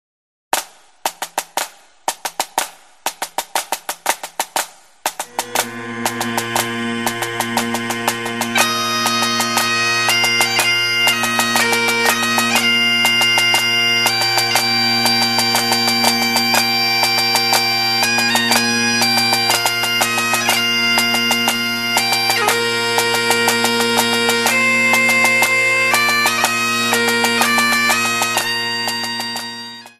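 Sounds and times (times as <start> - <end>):
kilted music: 0.6 - 29.9.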